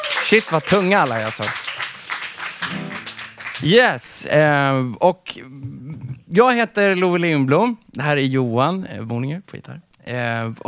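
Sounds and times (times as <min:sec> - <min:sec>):
audience applause: 0:00.0 - 0:03.8
speech: 0:00.2 - 0:01.6, 0:03.6 - 0:10.6.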